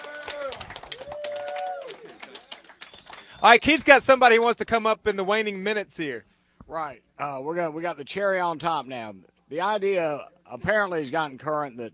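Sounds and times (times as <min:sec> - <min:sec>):
audience applause: 0:00.0 - 0:03.7
speech: 0:03.4 - 0:11.9.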